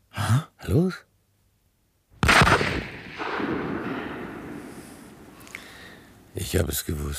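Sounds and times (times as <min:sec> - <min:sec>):
speech: 0:00.3 - 0:01.1, 0:06.4 - 0:07.1
gunshot outdoors: 0:02.2 - 0:05.2.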